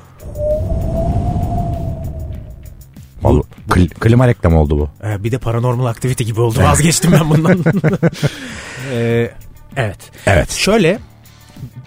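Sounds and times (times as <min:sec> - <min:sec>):
voice imitating a cold howling wind: 0:00.1 - 0:02.8
speech: 0:03.8 - 0:11.7
laughter: 0:06.8 - 0:08.5.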